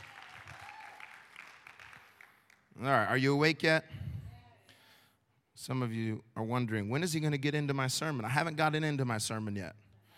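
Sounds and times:
audience clapping: 0.0 - 2.8
speech: 2.8 - 4.0, 5.6 - 9.8.

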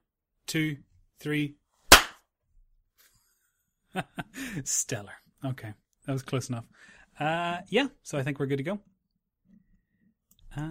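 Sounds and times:
speech: 0.5 - 1.6, 3.9 - 8.9
single sharp hand clap for audio sync: 1.9 - 2.2.

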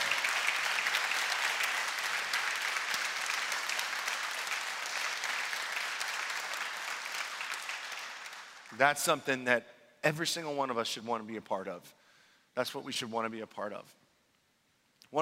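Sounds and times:
sustained audience applause: 0.0 - 8.8
speech: 8.8 - 12.0, 12.6 - 14.0.

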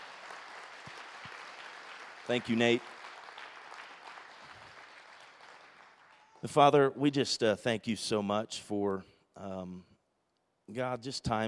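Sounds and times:
audience applause: 0.0 - 6.4
speech: 2.3 - 2.9, 6.4 - 9.9, 10.7 - 11.4.

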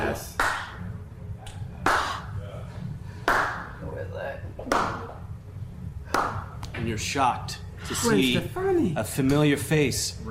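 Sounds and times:
slow clap: 0.4 - 0.8, 1.4 - 2.2, 3.2 - 3.8, 4.7 - 5.1, 6.1 - 6.8
speech: 6.9 - 10.3.

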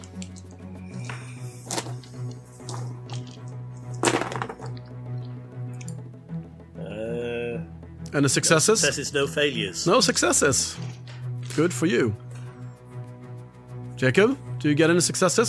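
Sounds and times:
dice rattling and clattering: 0.0 - 2.0, 2.6 - 4.9
speech: 8.1 - 11.0, 11.6 - 12.3, 14.0 - 15.4.

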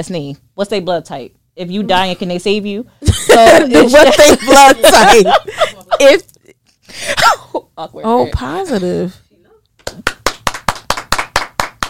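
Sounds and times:
speech: 0.0 - 6.3, 6.9 - 9.2
hand clapping: 9.8 - 11.8.

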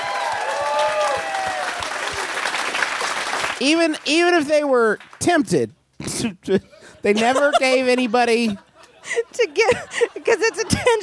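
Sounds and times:
audience applause: 0.0 - 4.1
speech: 3.6 - 11.0
laughter: 6.6 - 11.0.

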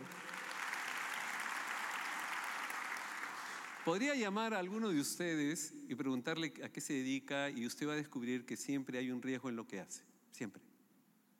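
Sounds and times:
audience applause: 0.0 - 4.2
speech: 3.9 - 10.7.

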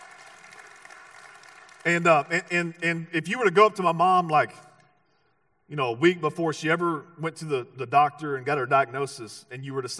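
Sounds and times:
audience clapping: 0.0 - 2.9
speech: 1.8 - 4.7, 5.7 - 9.9.

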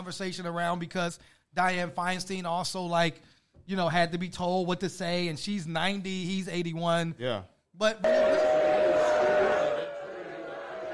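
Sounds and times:
speech: 0.0 - 8.5
crowd in Kentucky booing Mitch McConnell: 8.0 - 10.9.

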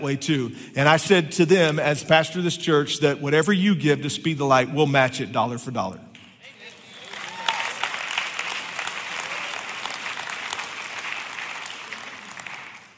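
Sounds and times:
speech: 0.0 - 6.1
audience applause: 6.4 - 12.9.

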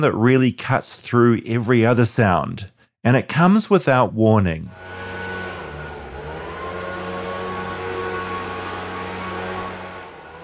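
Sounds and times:
speech: 0.0 - 5.1
leaf blower: 4.7 - 10.4.

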